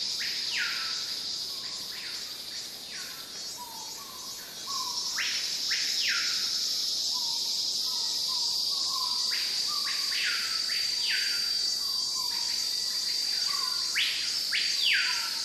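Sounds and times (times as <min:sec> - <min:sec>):
cicadas in a forest giving a steady high hissing drone: 0:00.0 - 0:15.4.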